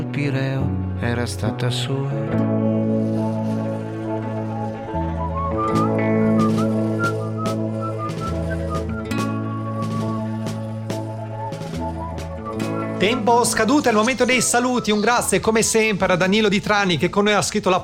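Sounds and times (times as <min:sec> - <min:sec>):
speech: 0:00.2 - 0:02.7, 0:13.0 - 0:17.8
steady droning instrumental chords: 0:01.9 - 0:16.2
man whistling a bright tune at a railway station: 0:04.8 - 0:15.4.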